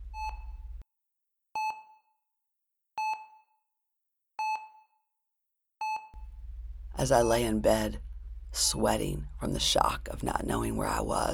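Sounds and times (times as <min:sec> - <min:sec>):
hospital ICU monitor beeping: 0:00.0 - 0:00.8
low hum: 0:00.0 - 0:00.8, 0:06.2 - 0:11.3
speech: 0:07.0 - 0:11.3.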